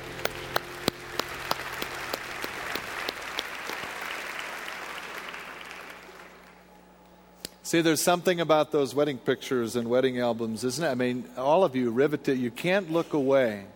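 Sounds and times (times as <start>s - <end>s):
audience applause: 0.0s - 6.6s
speech: 7.7s - 13.7s.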